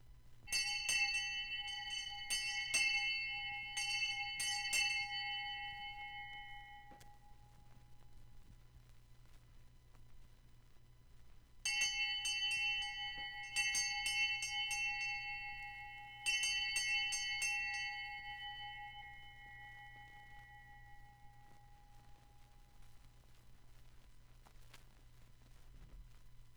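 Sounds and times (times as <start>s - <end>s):
hand bell: 0.4s - 8.1s, 11.7s - 22.7s.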